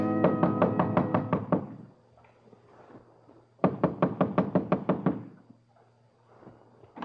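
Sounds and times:
knocking on a door: 0:00.2 - 0:01.8, 0:03.6 - 0:05.3.

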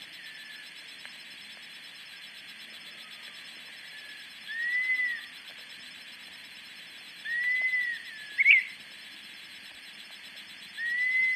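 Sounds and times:
dusky-capped flycatcher soft, drawn-out whistle: 0:03.9 - 0:05.3, 0:07.2 - 0:08.8, 0:10.8 - 0:11.3.

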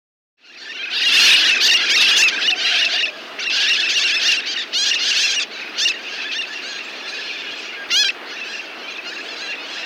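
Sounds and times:
mitred parakeet Aratinga mitrata screeching in South America: 0:00.8 - 0:06.4, 0:07.9 - 0:08.2.

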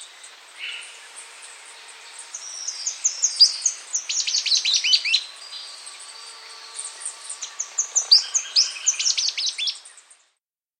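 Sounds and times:
Salvadori's Antwren calling in South America: 0:00.0 - 0:10.2.

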